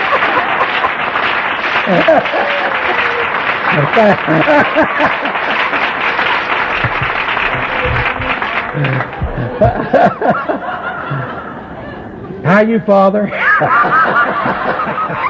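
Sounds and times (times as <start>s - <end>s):
audience applause: 0.0s - 11.2s
laughter: 0.0s - 12.5s, 13.3s - 15.2s
speech: 1.9s - 3.0s, 3.7s - 5.9s, 8.8s - 11.4s, 12.4s - 15.2s.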